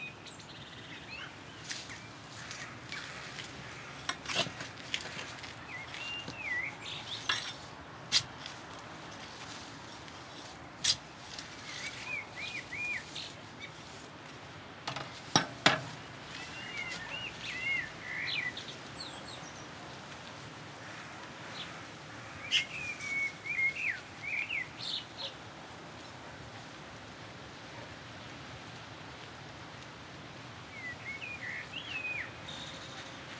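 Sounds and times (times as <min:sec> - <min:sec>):
spring garden ambience: 0:00.0 - 0:33.3.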